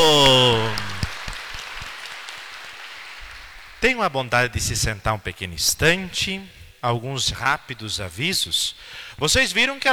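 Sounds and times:
loud voice holding a long exclaimed note: 0:00.0 - 0:01.0
group clapping hands in steady rhythm: 0:00.0 - 0:04.4
speech: 0:03.8 - 0:09.9.

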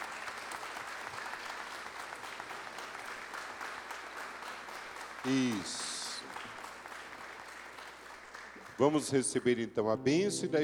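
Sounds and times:
audience applause: 0:00.0 - 0:09.6
speech: 0:05.2 - 0:05.9, 0:08.8 - 0:10.6.

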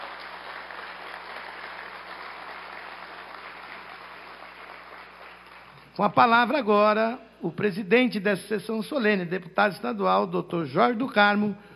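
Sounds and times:
round of applause: 0:00.0 - 0:06.0
speech: 0:06.0 - 0:11.7.

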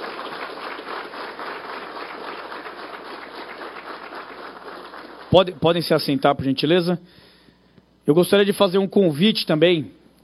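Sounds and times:
audience applause: 0:00.0 - 0:05.9
speech: 0:05.3 - 0:07.3, 0:08.0 - 0:10.0.

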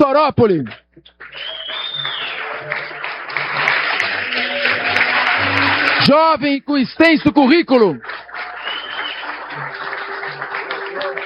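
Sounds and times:
speech: 0:00.0 - 0:00.8, 0:06.1 - 0:08.1
audience applause at an honor ceremony: 0:01.2 - 0:06.2, 0:07.7 - 0:11.2.

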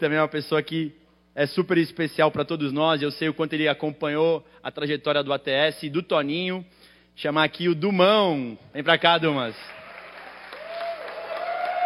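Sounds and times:
speech: 0:00.0 - 0:09.8
audience applause: 0:09.7 - 0:11.8.

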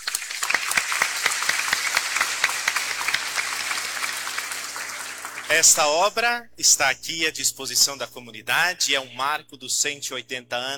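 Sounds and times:
audience clapping hands: 0:00.0 - 0:06.0
speech: 0:05.5 - 0:10.7.

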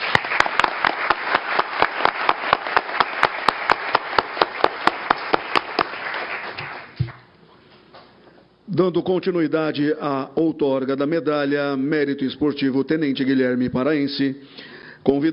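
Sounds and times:
round of applause: 0:00.0 - 0:07.3
speech: 0:08.8 - 0:15.3.

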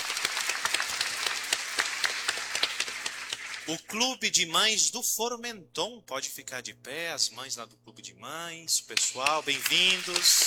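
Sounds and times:
crowd applause: 0:00.0 - 0:03.7, 0:09.2 - 0:10.4
speech: 0:03.7 - 0:10.4.

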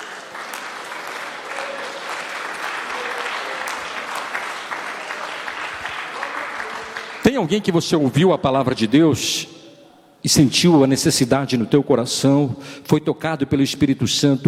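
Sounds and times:
audience applauding: 0:00.0 - 0:08.3
speech: 0:07.4 - 0:09.5, 0:10.2 - 0:14.4.

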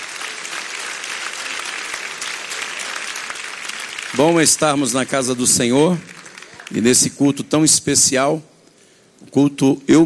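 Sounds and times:
audience applauding: 0:00.0 - 0:07.2
speech: 0:04.2 - 0:08.5, 0:09.3 - 0:10.0.

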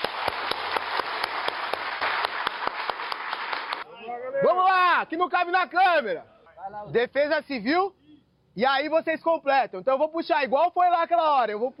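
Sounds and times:
applause: 0:00.0 - 0:03.9
speech: 0:04.4 - 0:08.0, 0:08.6 - 0:11.7.

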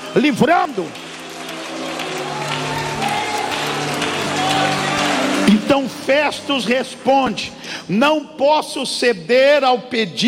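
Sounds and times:
audience clapping and cheering: 0:00.0 - 0:07.8
speech: 0:00.2 - 0:01.0, 0:05.7 - 0:10.2.

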